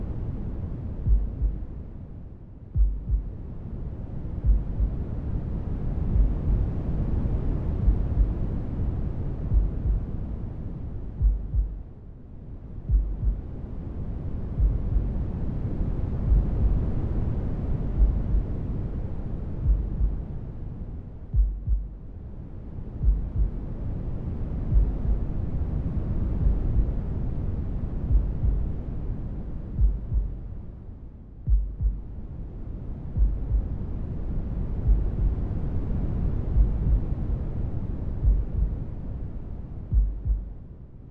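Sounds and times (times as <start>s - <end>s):
noise: 0.0s - 41.0s
heartbeat: 1.0s - 1.8s, 2.7s - 3.4s, 4.4s - 5.0s, 6.1s - 6.6s, 7.8s - 8.5s, 9.5s - 10.1s, 11.2s - 11.9s, 12.9s - 13.5s, 14.6s - 15.2s, 16.2s - 16.9s, 17.9s - 18.5s, 19.6s - 20.3s, 21.3s - 22.0s, 23.0s - 23.6s, 24.7s - 25.2s, 26.4s - 27.0s, 28.1s - 28.7s, 29.8s - 30.5s, 31.4s - 32.2s, 33.2s - 33.8s, 34.8s - 35.4s, 36.4s - 37.2s, 38.2s - 38.8s, 39.9s - 40.6s.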